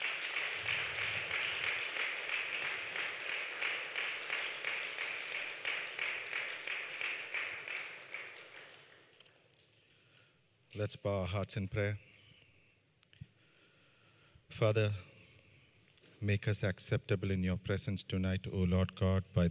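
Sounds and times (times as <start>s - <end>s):
audience clapping: 0.0s - 9.4s
speech: 10.8s - 12.1s, 14.6s - 15.1s, 16.2s - 19.5s.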